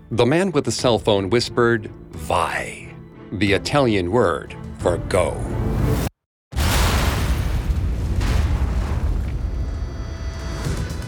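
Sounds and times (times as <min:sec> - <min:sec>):
speech: 0:00.1 - 0:06.1
TNT explosion in a tunnel under a highway: 0:06.5 - 0:11.0.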